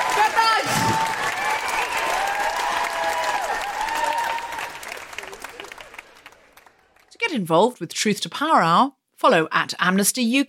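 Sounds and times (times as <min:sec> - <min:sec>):
audience applause for the cast at a live Amnesty show: 0:00.0 - 0:07.1
speech: 0:07.4 - 0:10.4.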